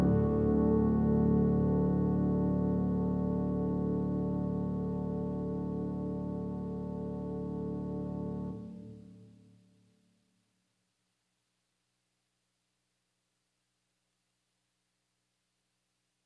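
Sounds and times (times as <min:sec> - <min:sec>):
brass choir playing carols: 0:00.0 - 0:08.7.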